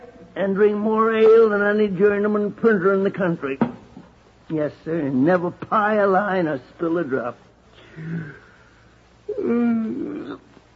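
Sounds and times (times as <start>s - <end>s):
speech: 0.4s - 3.7s, 4.5s - 8.4s, 9.3s - 10.5s
person yawning: 7.9s - 8.5s, 9.3s - 10.5s.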